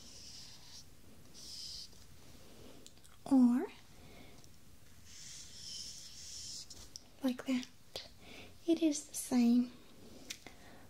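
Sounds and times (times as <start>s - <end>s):
pen writing the Greek letter phi by hand: 0.0s - 0.8s, 1.4s - 1.9s, 5.1s - 6.7s
speech: 3.3s - 3.6s, 7.3s - 7.8s, 8.7s - 9.8s.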